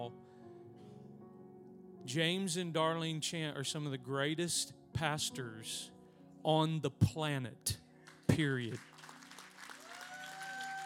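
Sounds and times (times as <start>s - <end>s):
speech: 2.0s - 8.9s
audience applause: 8.1s - 10.8s.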